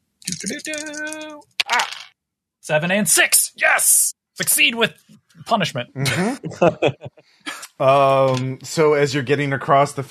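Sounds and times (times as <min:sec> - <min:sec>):
long steady voiced tone: 0:00.3 - 0:02.0, 0:06.0 - 0:07.1
dice clattering across a table: 0:00.3 - 0:02.1
speech: 0:00.4 - 0:02.0, 0:02.6 - 0:10.0
laughter: 0:06.0 - 0:07.7.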